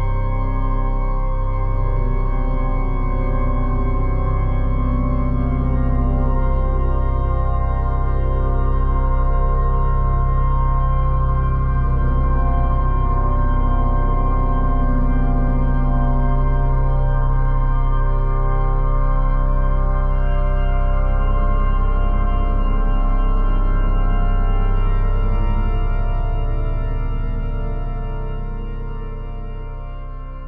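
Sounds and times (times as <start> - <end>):
organ sonata: 0.0 - 30.4.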